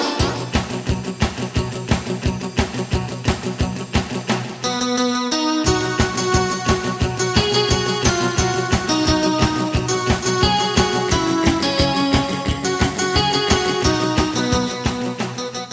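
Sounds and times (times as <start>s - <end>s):
bass: 0.2s - 15.7s.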